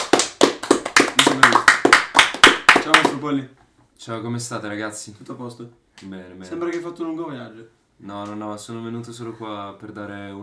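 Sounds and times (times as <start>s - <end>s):
applause: 0.0s - 3.3s
speech: 2.9s - 10.4s.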